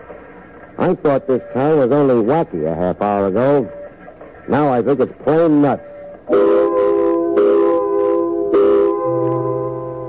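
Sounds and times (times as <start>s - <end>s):
speech: 0.8s - 3.8s, 4.5s - 6.5s
loud factory quitting-time whistle: 6.3s - 10.0s.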